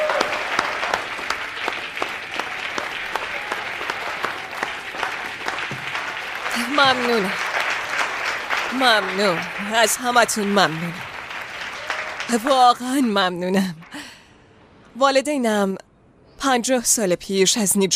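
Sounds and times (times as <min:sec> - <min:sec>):
audience applause: 0:00.0 - 0:14.1
speech: 0:06.8 - 0:07.5, 0:08.7 - 0:11.0, 0:12.3 - 0:13.8, 0:15.0 - 0:15.8, 0:16.4 - 0:17.9.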